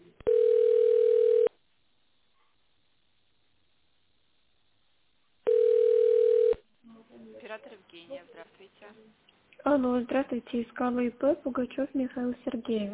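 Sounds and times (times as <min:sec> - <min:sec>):
telephone ringback tone: 0:00.3 - 0:01.5, 0:05.5 - 0:06.6
speech: 0:07.9 - 0:12.9.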